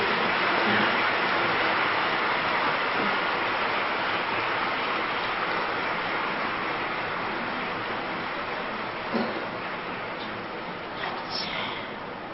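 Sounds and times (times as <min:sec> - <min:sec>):
audience applause: 0:00.0 - 0:12.2.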